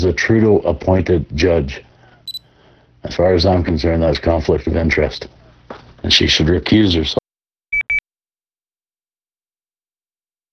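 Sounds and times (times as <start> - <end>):
speech: 0.1 - 1.9, 3.0 - 7.2
phone beeping while being put down: 2.3 - 2.5, 7.8 - 8.0.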